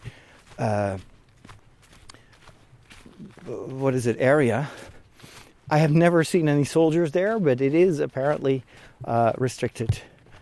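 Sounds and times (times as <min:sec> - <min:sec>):
footsteps walking outdoors beside a green fence: 0:00.0 - 0:10.4
speech: 0:00.6 - 0:01.1, 0:03.4 - 0:04.8, 0:05.7 - 0:10.1.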